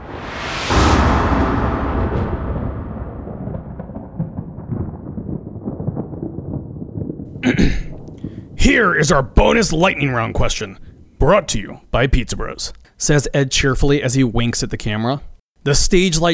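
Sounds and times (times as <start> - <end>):
thunder sound effect: 0.0 - 12.5
speech: 8.7 - 16.3.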